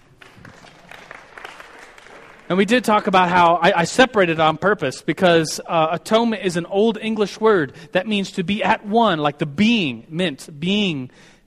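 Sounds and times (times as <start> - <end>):
audience applause: 0.0 - 2.6
speech: 2.5 - 11.4.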